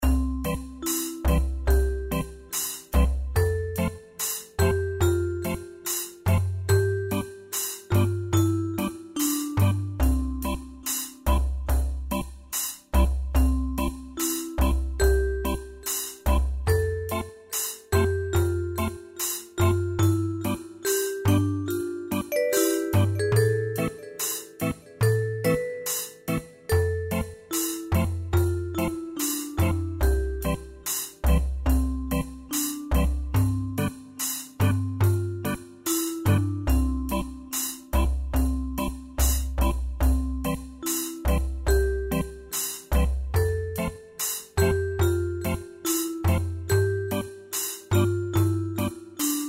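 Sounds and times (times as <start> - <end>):
reggae electronica music: 0.0 - 49.4.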